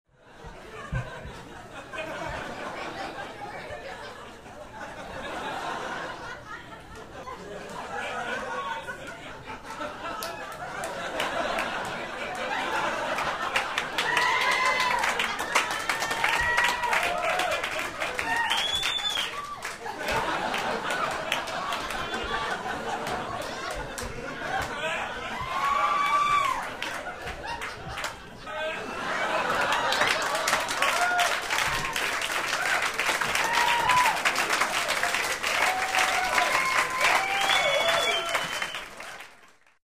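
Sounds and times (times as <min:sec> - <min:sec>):
laughter in the room: 0:00.2 - 0:16.0, 0:17.0 - 0:31.9
applause in the room: 0:10.1 - 0:24.8, 0:25.4 - 0:28.2, 0:29.0 - 0:39.8.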